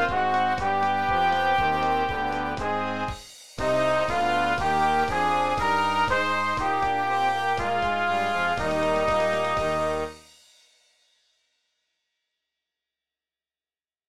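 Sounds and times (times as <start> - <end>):
fight song playback: 0.0 - 10.2.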